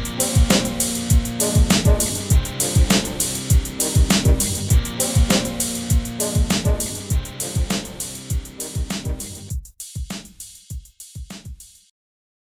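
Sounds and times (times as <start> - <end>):
fat guitar: 0.0 - 9.5.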